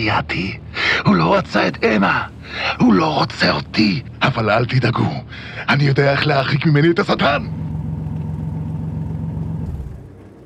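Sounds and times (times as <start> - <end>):
speech: 0.0 - 7.6
car engine idling then stalling: 1.0 - 5.6, 7.0 - 10.4.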